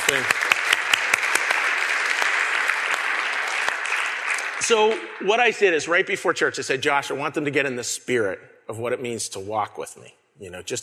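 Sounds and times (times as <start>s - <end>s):
audience applause: 0.0s - 5.3s
speech: 0.1s - 0.5s, 4.6s - 10.8s.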